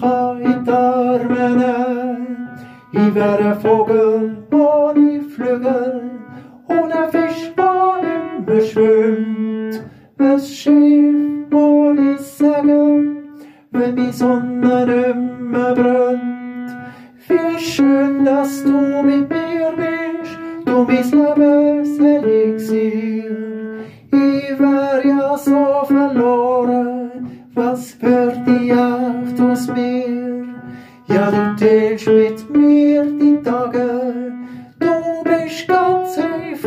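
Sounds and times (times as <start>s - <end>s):
tenor singing: 0.0s - 36.6s.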